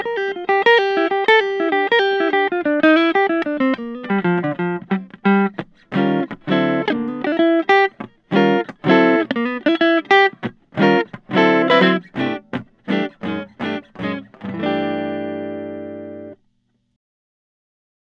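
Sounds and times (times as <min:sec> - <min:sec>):
Guild Benedetto flame maple guitar: 0:00.0 - 0:16.9.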